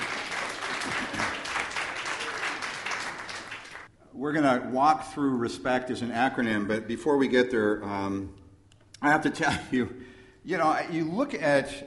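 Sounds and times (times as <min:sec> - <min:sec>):
audience applause: 0:00.0 - 0:03.9
laughter: 0:00.7 - 0:01.5
speech: 0:04.2 - 0:08.4, 0:09.0 - 0:11.8.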